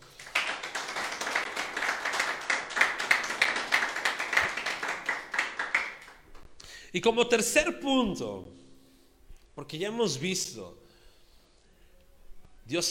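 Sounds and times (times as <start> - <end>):
audience clapping: 0.0 - 6.5
speech: 6.9 - 8.6, 9.6 - 10.8, 12.7 - 12.8.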